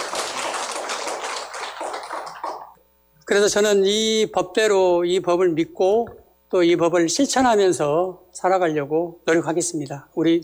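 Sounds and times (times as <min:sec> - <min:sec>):
audience applause: 0:00.0 - 0:02.8
speech: 0:03.3 - 0:10.4.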